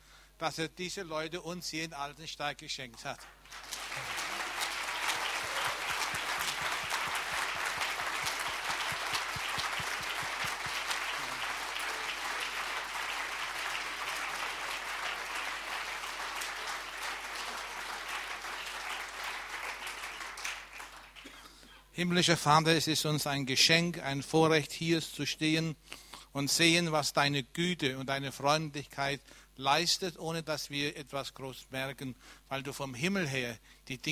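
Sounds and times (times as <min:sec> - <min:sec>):
speech: 0:00.4 - 0:04.1, 0:22.0 - 0:34.1
crowd applause: 0:03.2 - 0:21.5.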